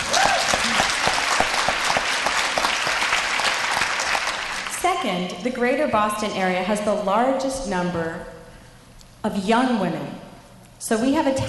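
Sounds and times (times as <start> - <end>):
audience cheering: 0.0 - 4.7
speech: 5.0 - 8.4, 9.2 - 10.2, 10.8 - 11.4.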